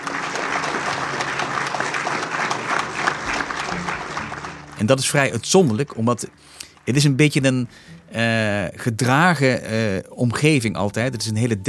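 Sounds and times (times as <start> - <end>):
applause in a large hall: 0.0 - 7.7
speech: 4.8 - 11.6.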